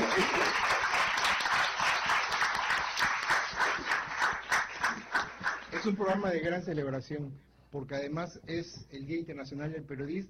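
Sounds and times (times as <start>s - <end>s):
audience applause: 0.0s - 6.0s
speech: 5.8s - 10.2s.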